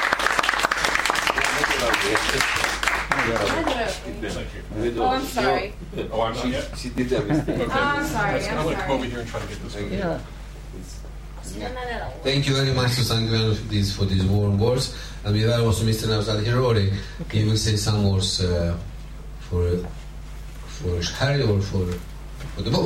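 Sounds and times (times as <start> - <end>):
audience applause welcoming speaker: 0.0 - 4.0
speech: 1.9 - 11.0, 11.6 - 18.9, 19.5 - 20.0, 20.8 - 22.8
laughter: 7.0 - 8.3.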